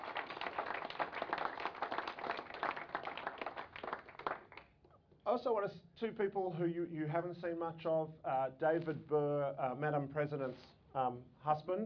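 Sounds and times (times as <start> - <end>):
audience applause: 0.0 - 4.6
speech: 5.3 - 11.8.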